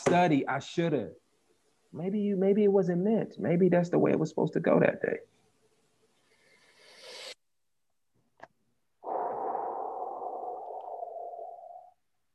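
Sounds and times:
speech: 0:00.0 - 0:01.2, 0:01.9 - 0:05.3
deep breath: 0:06.2 - 0:07.4, 0:09.0 - 0:12.0.

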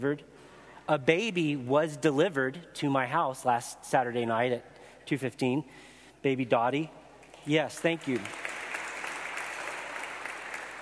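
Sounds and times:
speech: 0:00.0 - 0:08.4
audience clapping: 0:07.2 - 0:10.7.

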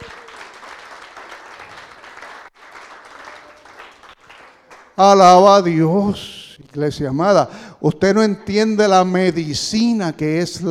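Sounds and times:
crowd applause: 0:00.0 - 0:05.0
speech: 0:05.0 - 0:10.6.

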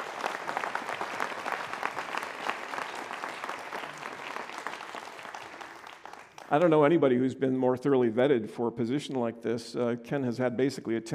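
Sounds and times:
round of applause: 0:00.0 - 0:06.8
speech: 0:06.5 - 0:11.1.

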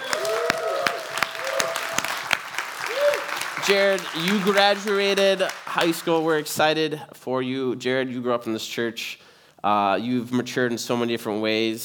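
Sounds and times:
rising vocal whoops: 0:00.0 - 0:03.4
audience applause: 0:00.0 - 0:06.4
speech: 0:03.7 - 0:11.8.

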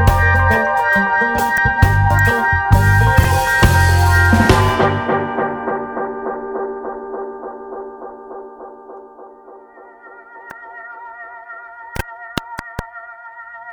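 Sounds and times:
dub music: 0:00.0 - 0:10.8.

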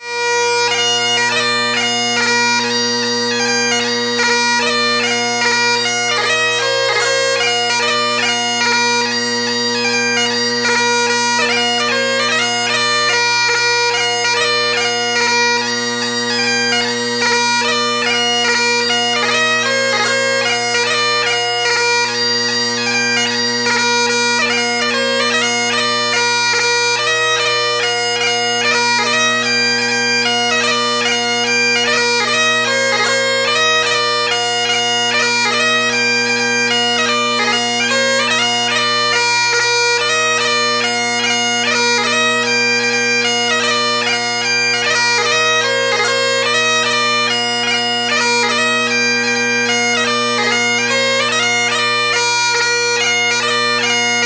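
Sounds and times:
traditional Scottish bagpiper playing: 0:00.0 - 0:54.2.

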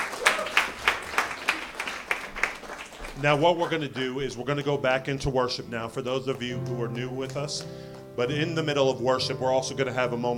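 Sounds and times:
audience applauding: 0:00.0 - 0:04.7
speech: 0:03.2 - 0:10.3.

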